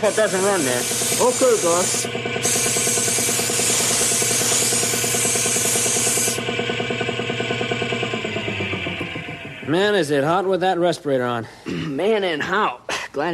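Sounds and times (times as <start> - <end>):
speech: 0.0 - 2.6, 9.7 - 13.3
spray painting a bolt: 0.0 - 6.4
rhythmic droning background: 0.0 - 10.5.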